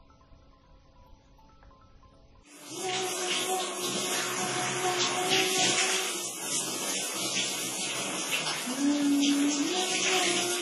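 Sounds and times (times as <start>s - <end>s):
shower running: 2.5s - 10.5s.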